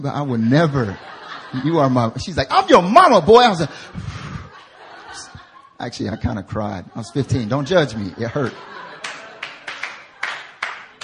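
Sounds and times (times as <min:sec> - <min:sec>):
speech: 0:00.0 - 0:04.2, 0:05.1 - 0:08.8
laughter: 0:00.2 - 0:11.0
audience clapping: 0:08.3 - 0:11.0.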